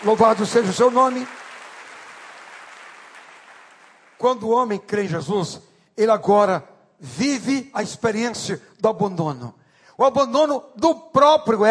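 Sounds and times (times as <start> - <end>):
speech: 0.0 - 1.4, 4.2 - 11.7
audience applause: 0.0 - 4.2.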